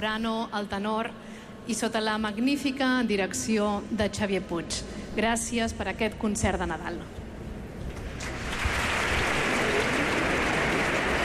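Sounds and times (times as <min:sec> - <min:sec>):
speech: 0:00.0 - 0:07.2
audience ovation in a basilica: 0:08.2 - 0:11.2.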